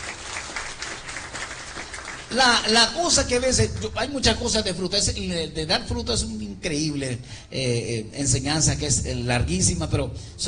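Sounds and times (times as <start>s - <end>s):
congregation applause during a church service: 0.0s - 3.5s
speech: 2.3s - 10.4s.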